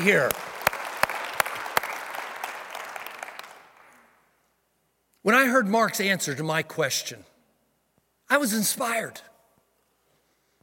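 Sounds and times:
speech: 0.0s - 0.5s, 5.2s - 7.3s, 8.3s - 9.3s
audience applause: 0.0s - 4.0s.

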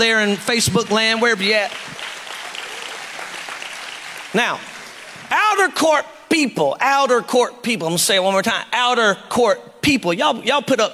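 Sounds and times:
speech: 0.0s - 1.9s, 4.3s - 4.7s, 5.3s - 10.9s
audience clapping: 0.0s - 5.7s.

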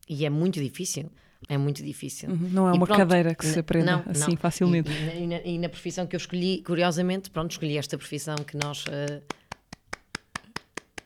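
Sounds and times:
speech: 0.1s - 9.4s
applause, hands clapping: 8.1s - 11.0s.

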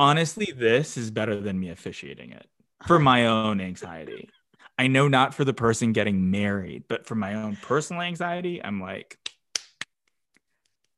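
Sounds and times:
speech: 0.0s - 9.2s
hands clapping: 9.1s - 10.9s.

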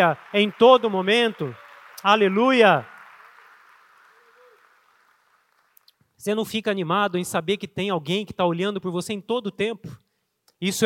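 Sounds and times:
speech: 0.0s - 2.9s, 6.2s - 10.0s, 10.6s - 10.8s
audience applause: 0.0s - 5.9s.

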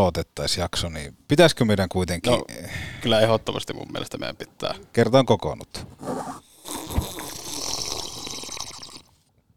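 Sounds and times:
speech: 0.0s - 7.0s
slurping coffee from paper cup: 5.8s - 9.2s.

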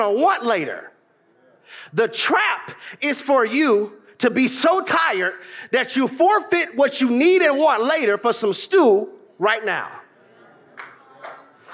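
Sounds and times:
speech: 0.0s - 0.9s, 1.7s - 10.0s
single hand clap: 10.8s - 11.7s.

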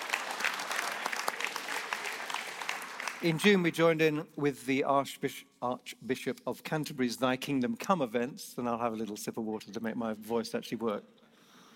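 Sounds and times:
audience applause: 0.0s - 3.4s
speech: 3.2s - 11.2s.

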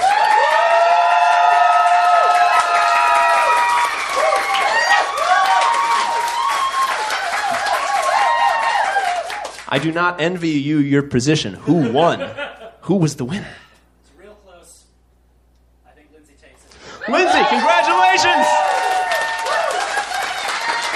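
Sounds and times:
audience applause and cheering: 0.0s - 9.9s, 17.0s - 20.9s
speech: 9.7s - 13.6s
laughter: 11.6s - 13.5s.

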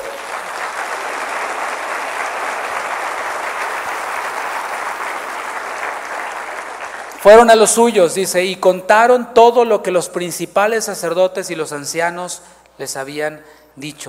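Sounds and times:
audience applause: 0.0s - 7.2s
speech: 7.2s - 14.0s.

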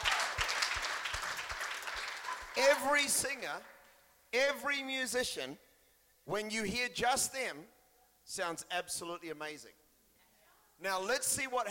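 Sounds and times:
audience clapping: 0.0s - 3.7s
speech: 2.6s - 5.7s, 6.3s - 9.8s, 10.8s - 11.7s.

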